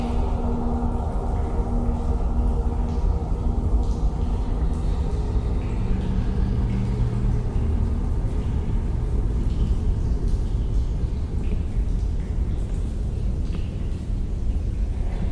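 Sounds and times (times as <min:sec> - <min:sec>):
dark ambience: 0:00.0 - 0:15.3.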